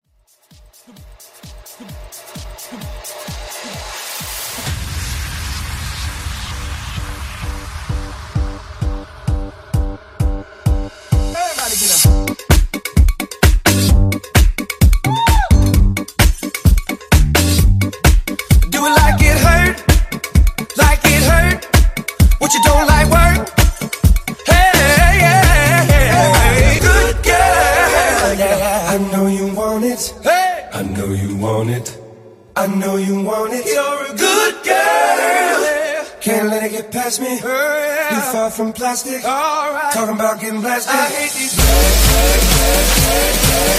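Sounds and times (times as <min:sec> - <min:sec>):
big room mashup: 0:00.2 - 0:05.6, 0:06.9 - 0:43.7.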